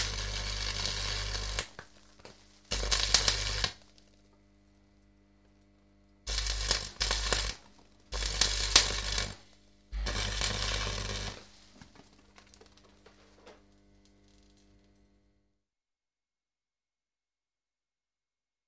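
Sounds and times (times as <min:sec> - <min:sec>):
welding metal: 0:00.0 - 0:01.8, 0:02.7 - 0:03.8, 0:06.3 - 0:09.4, 0:10.0 - 0:15.1.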